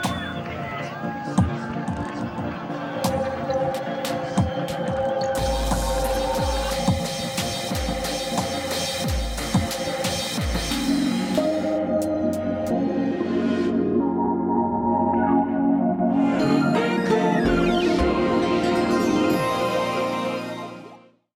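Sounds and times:
gameplay interstitial music: 0.0s - 21.1s.

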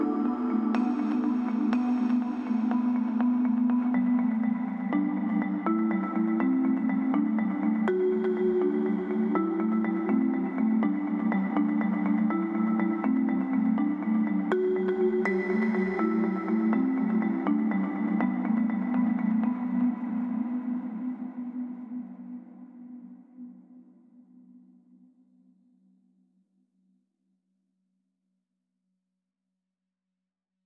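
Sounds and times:
desert-style melody: 0.0s - 21.8s.

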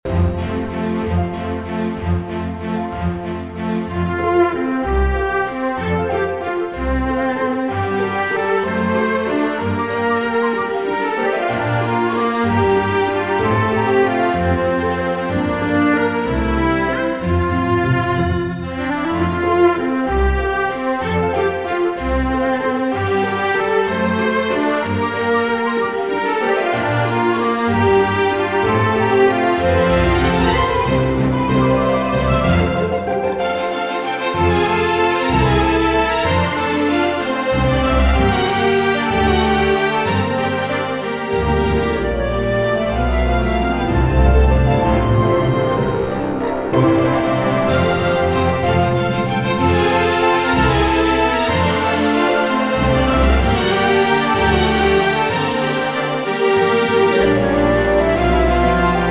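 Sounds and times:
waltz loop: 0.0s - 59.1s.

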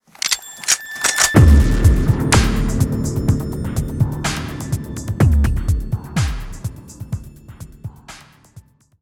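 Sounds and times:
cinematic sound: 1.1s - 7.5s.

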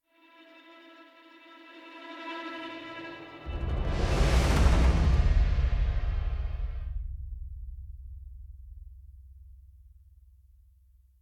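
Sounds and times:
action music intro: 3.2s - 7.2s.

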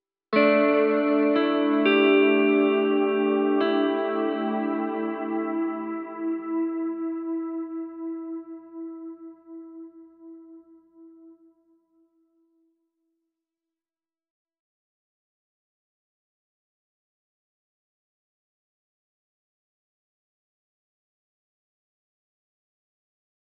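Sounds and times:
guitar: 0.3s - 11.5s.

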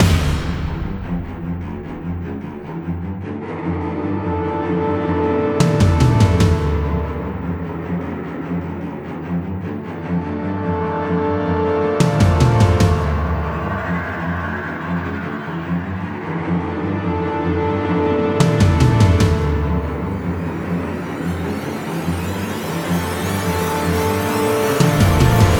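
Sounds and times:
action trailer music cue: 0.0s - 25.5s.

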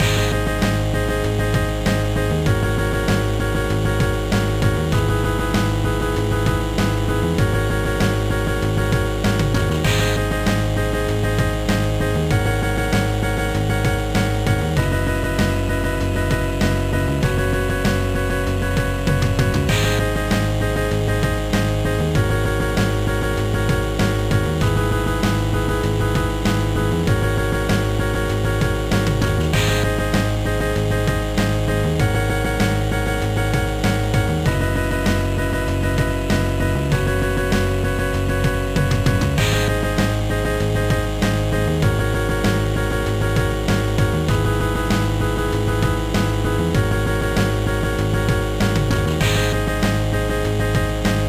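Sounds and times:
background music: 0.0s - 51.2s.

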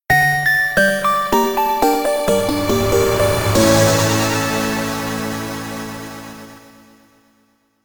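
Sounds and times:
musical stinger: 0.8s - 7.1s.

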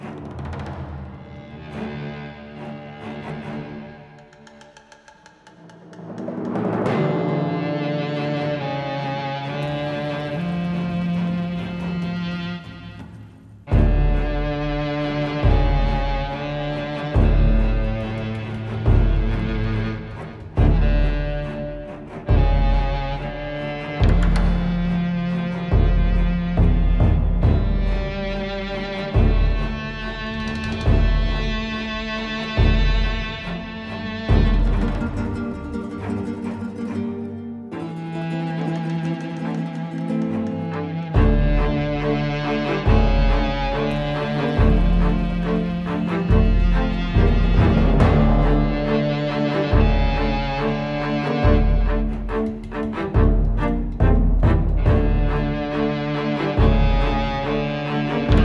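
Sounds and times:
action chase music at 140 BPM: 5.4s - 36.8s, 38.0s - 58.4s.

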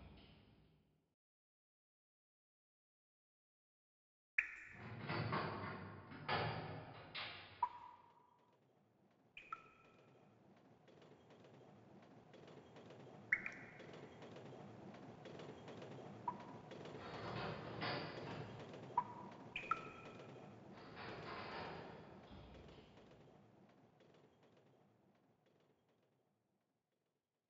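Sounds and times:
mine cave ambience: 4.4s - 26.2s.

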